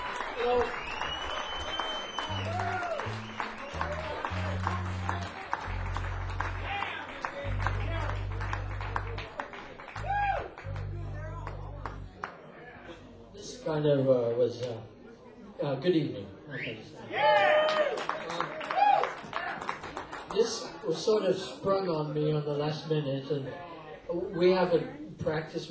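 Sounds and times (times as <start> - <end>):
audience applause: 0.0 - 12.4, 17.3 - 20.8
speech: 0.4 - 1.0, 13.7 - 15.0, 15.6 - 17.6, 20.4 - 25.6.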